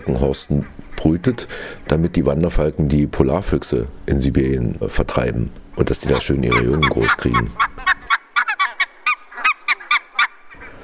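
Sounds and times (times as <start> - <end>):
barnacle geese giving sharp high dog-like yaps: 0.0 - 2.1, 6.0 - 10.8
speech: 0.0 - 7.7.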